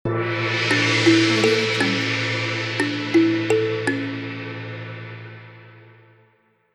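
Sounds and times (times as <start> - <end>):
short yoga meditation logo jingle: 0.2 - 5.3.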